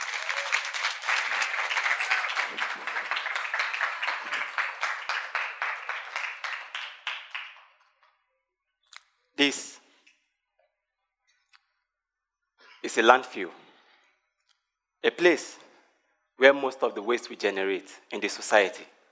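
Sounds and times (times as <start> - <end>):
audience applause: 0.0 - 8.0
speech: 9.4 - 9.7, 12.9 - 13.6, 15.0 - 15.6, 16.4 - 19.0.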